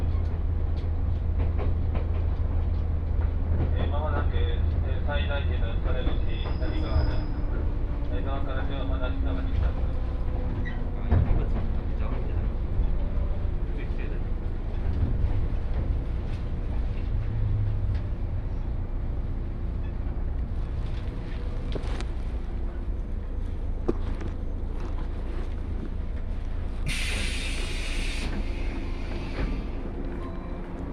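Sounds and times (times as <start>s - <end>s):
Akō Line train carriage rumble: 0.0s - 30.9s
clattering and squealing: 6.0s - 8.1s, 9.5s - 13.3s.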